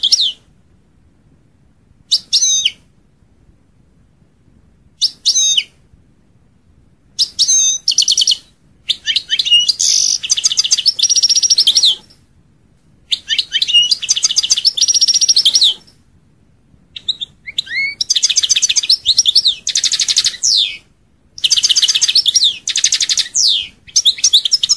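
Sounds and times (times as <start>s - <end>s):
European goldfinch song: 0.0s - 0.4s, 2.1s - 2.8s, 5.0s - 5.7s, 7.2s - 12.2s, 13.1s - 16.0s, 16.9s - 24.7s.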